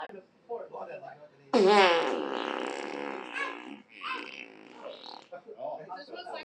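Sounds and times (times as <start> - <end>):
dry fart: 1.5 - 5.3.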